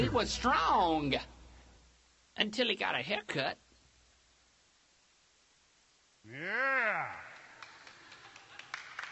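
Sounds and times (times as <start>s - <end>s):
speech: 0.1s - 1.3s, 2.4s - 3.7s, 6.3s - 7.2s
audience clapping: 7.2s - 9.0s.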